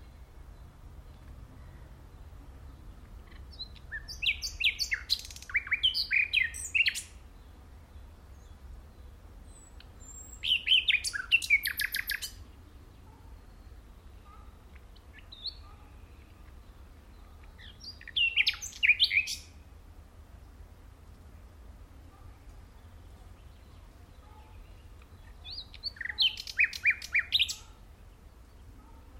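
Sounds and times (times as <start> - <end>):
common nightingale song: 0.0 - 29.1.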